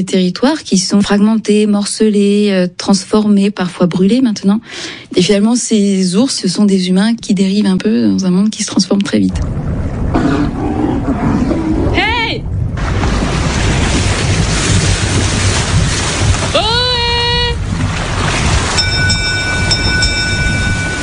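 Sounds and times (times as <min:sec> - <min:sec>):
speech: 0:00.0 - 0:11.5
boat approaching: 0:09.3 - 0:16.6, 0:17.4 - 0:21.0.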